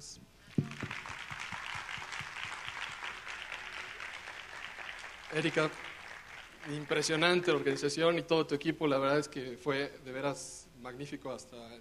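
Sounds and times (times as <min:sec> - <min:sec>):
audience applause: 0:00.5 - 0:07.9
speech: 0:05.3 - 0:05.9, 0:06.6 - 0:11.7.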